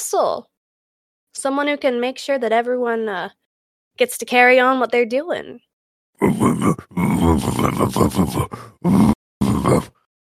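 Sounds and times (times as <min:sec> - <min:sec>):
speech: 0:00.1 - 0:00.5, 0:01.4 - 0:03.4, 0:04.0 - 0:10.0
person choking and gagging on a chicken bone: 0:06.2 - 0:10.1.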